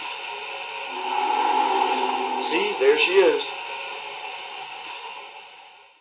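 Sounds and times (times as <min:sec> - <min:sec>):
freight train: 0:00.9 - 0:04.7.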